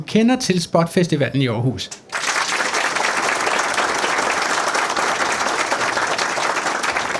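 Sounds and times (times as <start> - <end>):
speech: 0.0 - 2.0
audience applause in a tent: 2.1 - 7.1.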